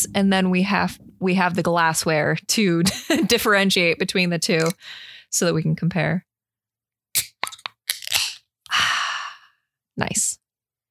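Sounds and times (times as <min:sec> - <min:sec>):
speech: 0:00.0 - 0:06.3
beer containers being cracked open: 0:07.2 - 0:08.4.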